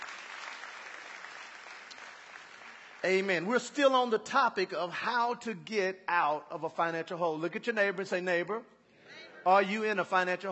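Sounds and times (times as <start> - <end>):
hand clapping for a testimony: 0.0 - 3.0
speech: 3.0 - 8.8, 9.4 - 10.5.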